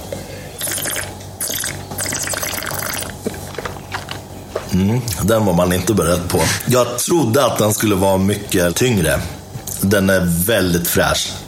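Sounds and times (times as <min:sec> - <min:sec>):
person slurping wine while tasting: 0:00.6 - 0:03.1
speech: 0:04.7 - 0:11.4.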